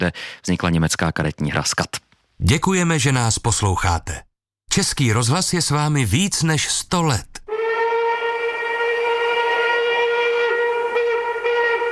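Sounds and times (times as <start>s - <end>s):
speech: 0.0s - 7.4s
express train whistle as the train passes: 7.5s - 11.9s.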